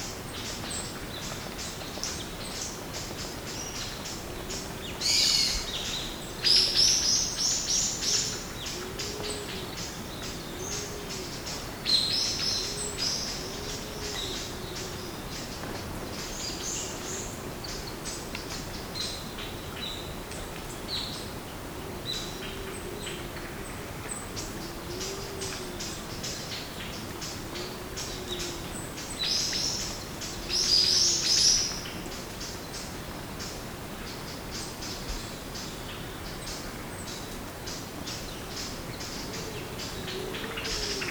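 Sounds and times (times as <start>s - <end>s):
old growth forest ambience: 0.0s - 41.0s.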